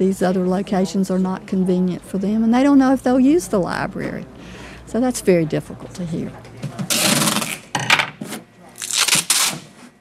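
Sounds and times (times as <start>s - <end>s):
speech: 0.0s - 6.8s
packing tape ripped off the roll to seal moving boxes: 6.9s - 10.0s.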